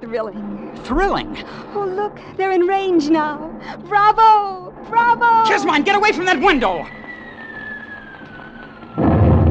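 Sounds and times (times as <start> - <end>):
speech: 0.1 - 7.0
anti-aircraft guns firing in a radio drama: 8.4 - 9.4.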